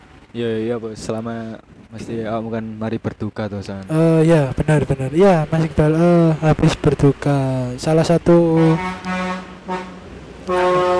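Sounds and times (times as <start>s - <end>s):
speech: 0.4s - 9.1s
truck horn blasts: 8.4s - 10.9s.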